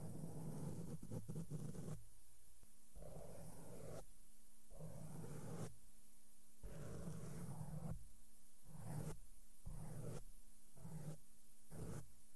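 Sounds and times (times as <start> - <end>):
makeup brushes sweeping across a microphone: 0.0 - 2.0, 4.7 - 5.8, 6.6 - 8.0, 8.7 - 12.1
faint steady hum: 0.0 - 12.3.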